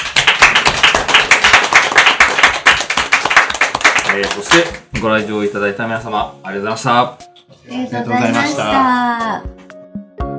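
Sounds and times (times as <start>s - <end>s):
audience applause: 0.0s - 4.8s
speech: 4.2s - 9.5s.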